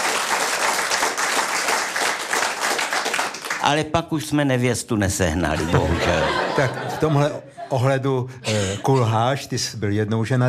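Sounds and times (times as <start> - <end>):
audience applause: 0.0 - 3.6
speech: 3.7 - 10.4
laughter: 5.3 - 9.2.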